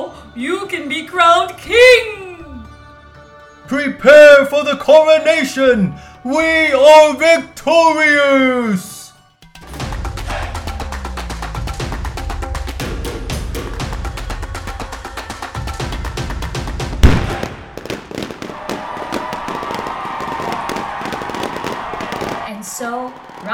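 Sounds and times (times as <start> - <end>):
speech: 0.4 - 2.2, 3.7 - 8.9
fireworks at a celebration crackling: 15.2 - 23.5
loud firework bang: 17.0 - 19.4.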